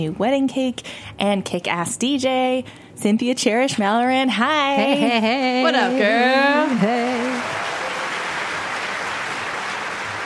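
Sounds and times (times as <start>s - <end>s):
speech: 0.0s - 7.6s
crowd applauding: 5.8s - 10.2s.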